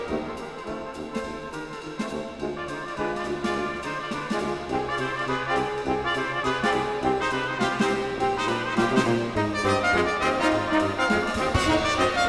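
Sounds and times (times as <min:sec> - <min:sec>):
keyboard prelude and fugue: 0:00.0 - 0:12.2.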